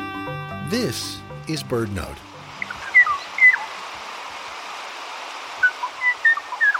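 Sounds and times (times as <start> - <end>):
speech: 0.8 - 2.3
song of the Kauai O'o: 2.6 - 3.6, 5.6 - 6.7.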